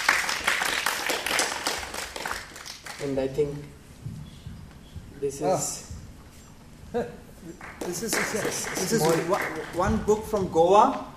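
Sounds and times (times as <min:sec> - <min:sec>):
audience applause: 0:00.0 - 0:03.1, 0:07.5 - 0:10.2
speech: 0:03.0 - 0:04.2, 0:05.2 - 0:05.9, 0:06.9 - 0:11.1.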